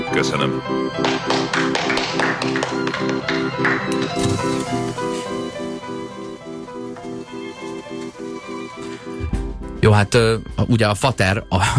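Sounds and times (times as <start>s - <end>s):
speech: 0.2s - 1.3s, 3.0s - 5.6s, 9.8s - 11.7s
group clapping: 0.9s - 4.3s.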